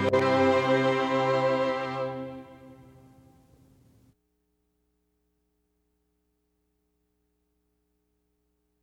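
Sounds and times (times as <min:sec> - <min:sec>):
strings: 0:00.0 - 0:03.4.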